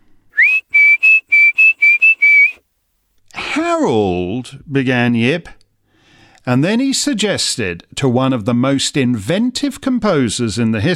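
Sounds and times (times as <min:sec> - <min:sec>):
short whistle used to call a dog: 0:00.4 - 0:02.6
speech: 0:03.7 - 0:05.6, 0:06.4 - 0:10.9.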